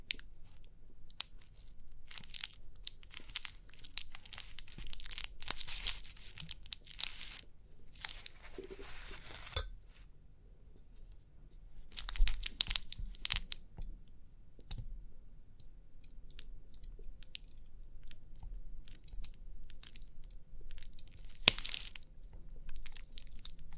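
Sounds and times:
crinkly pimple popping crackling: 0.0 - 10.1, 10.8 - 23.7.

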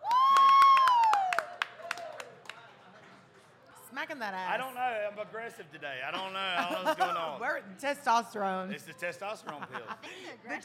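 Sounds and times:
audience whooping: 0.0 - 2.3
audience clapping: 0.0 - 3.3
speech: 4.0 - 10.6
laughter: 6.2 - 7.4, 9.3 - 10.6.

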